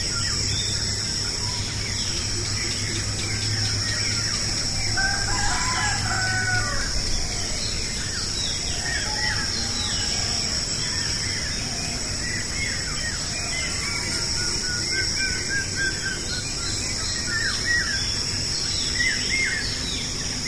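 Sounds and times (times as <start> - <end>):
dawn soundscape: 0.0 - 20.4.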